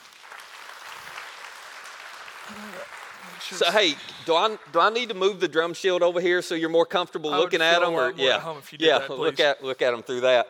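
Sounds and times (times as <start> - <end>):
studio audience clapping to welcome a guest: 0.0 - 6.0
speech: 2.5 - 10.4.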